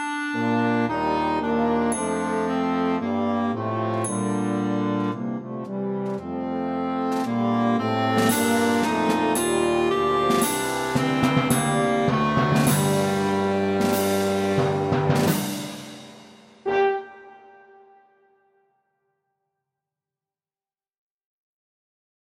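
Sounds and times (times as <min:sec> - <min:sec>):
clarinet melody: 0:00.0 - 0:15.6, 0:16.6 - 0:18.8.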